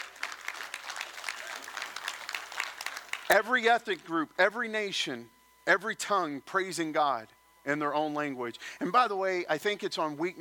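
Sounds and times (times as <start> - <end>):
audience applause: 0.0 - 3.4
speech: 3.3 - 10.3.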